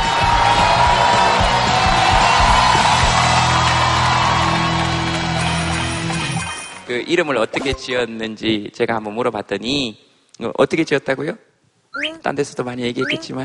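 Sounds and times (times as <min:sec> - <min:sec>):
crowd applauding: 0:00.0 - 0:06.9
speech: 0:06.9 - 0:13.4.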